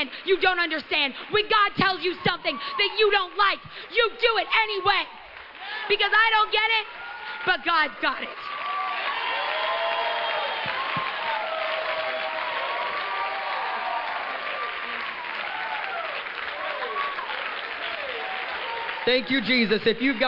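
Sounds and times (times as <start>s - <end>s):
speech: 0.0s - 8.6s, 19.1s - 20.2s
crowd whooping and cheering: 0.4s - 20.2s
audience applause: 4.7s - 20.2s.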